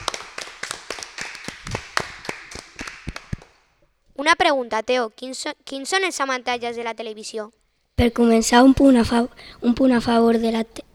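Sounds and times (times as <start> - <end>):
audience applause: 0.0 - 3.6
speech: 4.2 - 10.8.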